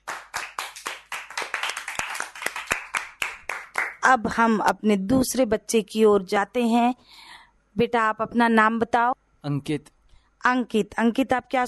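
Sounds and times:
group clapping: 0.0 - 4.2
speech: 4.0 - 11.6.

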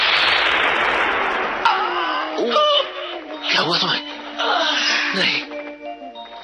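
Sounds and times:
gunshot of enemy bullet in battle: 0.0 - 2.4
speech: 3.6 - 5.4.

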